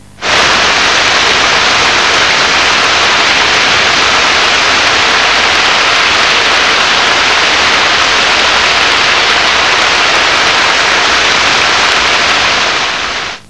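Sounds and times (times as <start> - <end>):
rain: 0.2 - 13.4.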